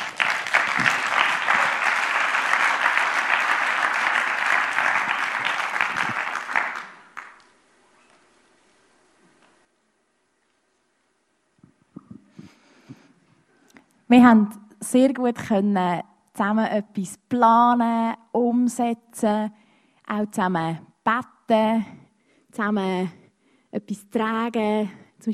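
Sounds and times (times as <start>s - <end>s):
warm audience applause: 0.0s - 7.5s
speech: 14.1s - 23.2s, 23.8s - 25.3s.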